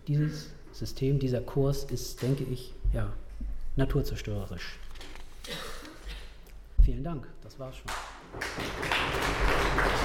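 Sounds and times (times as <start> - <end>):
speech: 0.1 - 3.2, 3.8 - 4.8, 6.9 - 10.0
crowd applause: 8.3 - 10.0.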